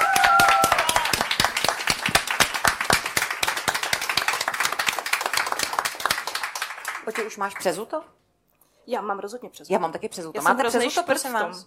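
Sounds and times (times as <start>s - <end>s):
audience applause: 0.0s - 7.4s
speech: 7.1s - 8.2s, 8.8s - 11.6s.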